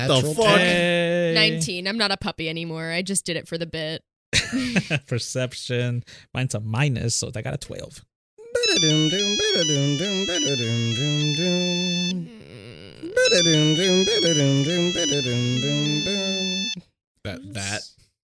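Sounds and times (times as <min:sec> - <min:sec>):
speech: 0:00.0 - 0:18.0
phone ringtone for an incoming call: 0:08.6 - 0:12.2, 0:13.2 - 0:16.8.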